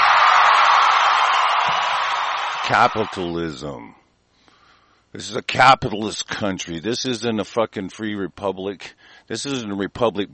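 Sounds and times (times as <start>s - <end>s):
audience applause and cheering: 0.0s - 3.4s
speech: 2.7s - 4.0s, 5.1s - 10.3s.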